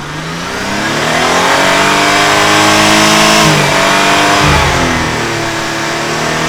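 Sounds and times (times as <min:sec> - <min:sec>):
engine revving: 0:00.2 - 0:06.4.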